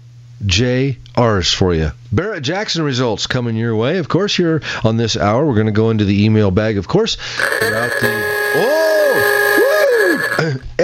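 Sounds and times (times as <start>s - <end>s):
speech: 0.4s - 9.3s
Ooga horn blast: 7.4s - 10.6s.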